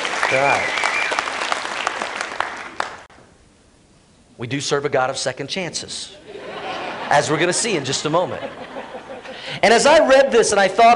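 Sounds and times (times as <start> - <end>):
audience clapping: 0.0 - 3.1
speech: 0.3 - 0.8, 4.4 - 6.3, 7.1 - 8.8, 9.5 - 10.9
laughter: 6.2 - 9.7.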